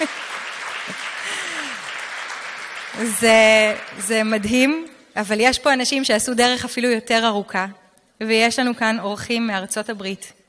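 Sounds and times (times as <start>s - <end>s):
audience applause: 0.0s - 4.5s
speech: 3.0s - 10.4s.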